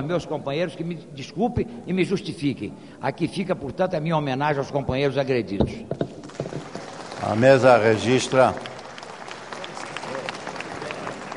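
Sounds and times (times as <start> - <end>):
speech: 0.0 - 6.2, 7.2 - 8.7
applause in a parliament chamber: 6.2 - 11.3.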